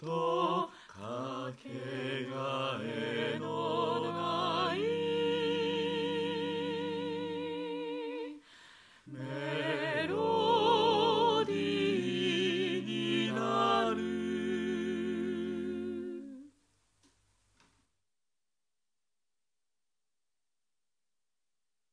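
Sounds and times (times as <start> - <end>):
choir singing: 0.0 - 8.4, 9.1 - 16.5.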